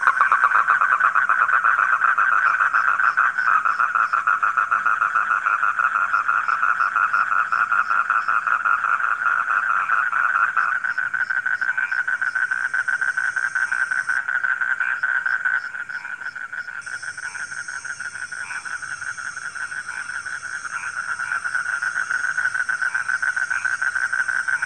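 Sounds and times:
frog chorus: 0:00.0 - 0:24.6
high insect-like whine: 0:11.0 - 0:24.6.

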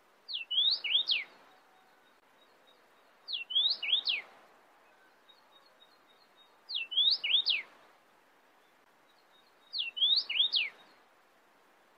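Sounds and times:
cardinal singing sweeping whistled phrases: 0:00.3 - 0:01.3, 0:03.3 - 0:04.2, 0:06.7 - 0:07.7, 0:09.7 - 0:10.8.

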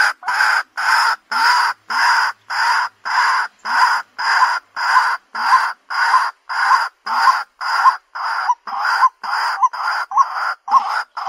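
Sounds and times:
white-breasted waterhen croaking: 0:00.0 - 0:11.2.

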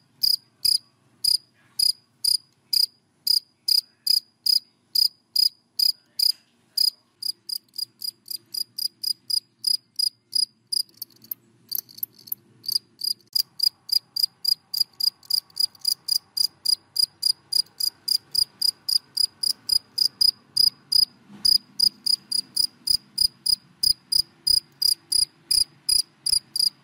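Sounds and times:
cricket chirping: 0:00.2 - 0:26.8.

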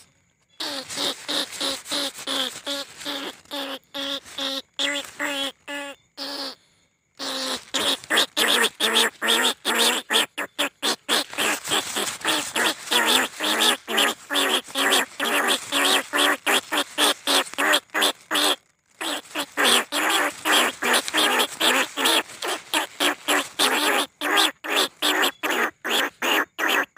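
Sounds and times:
rice-field rat squealing: 0:00.6 - 0:06.6, 0:07.2 - 0:26.9.

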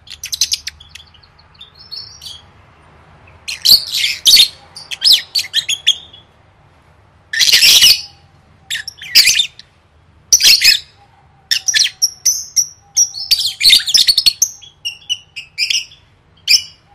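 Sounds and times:
lovebirds squawking: 0:00.0 - 0:02.4, 0:03.3 - 0:06.3, 0:07.3 - 0:09.7, 0:10.3 - 0:16.9
speech: 0:03.7 - 0:04.2.

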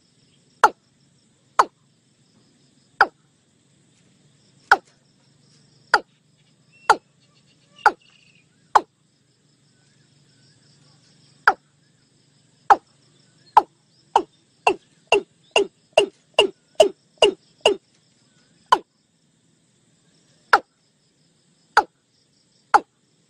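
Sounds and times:
faint low hum: 0:00.0 - 0:23.2
Watercock call series: 0:00.6 - 0:00.8, 0:01.6 - 0:01.8, 0:03.0 - 0:03.2, 0:04.7 - 0:04.9, 0:05.9 - 0:06.1, 0:06.8 - 0:07.1, 0:07.8 - 0:08.1, 0:08.7 - 0:08.9, 0:11.4 - 0:11.7, 0:12.7 - 0:12.9, 0:13.5 - 0:17.9, 0:18.7 - 0:18.9, 0:20.5 - 0:20.7, 0:21.8 - 0:22.0, 0:22.7 - 0:22.9.

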